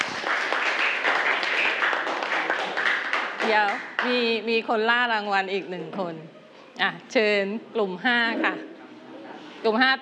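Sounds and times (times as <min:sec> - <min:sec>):
children applauding in a classroom: 0:00.0 - 0:04.1
speech: 0:03.5 - 0:08.7, 0:09.6 - 0:10.0.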